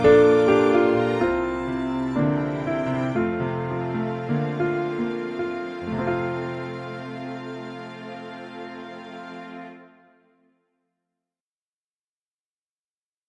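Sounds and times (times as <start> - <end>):
moody piano piece: 0.0 - 10.5.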